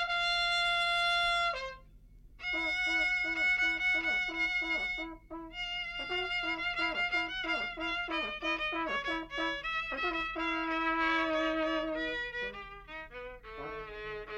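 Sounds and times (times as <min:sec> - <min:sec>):
violin: 0:00.0 - 0:14.3.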